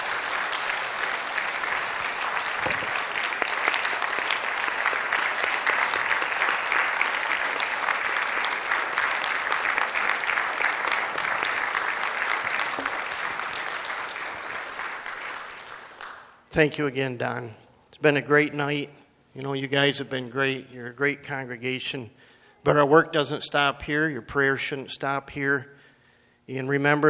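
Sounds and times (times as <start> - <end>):
crowd applause: 0.0 - 16.4
speech: 16.6 - 25.8, 26.5 - 27.0.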